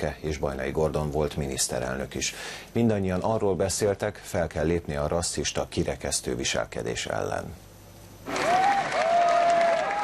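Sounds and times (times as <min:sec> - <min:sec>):
speech: 0:00.0 - 0:07.7
crowd applause at a mass demonstration against Nazism: 0:08.3 - 0:10.0.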